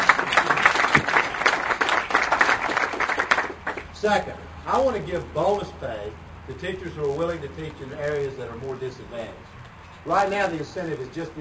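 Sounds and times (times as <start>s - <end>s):
audience applause: 0.0s - 3.8s
speech: 4.0s - 11.3s.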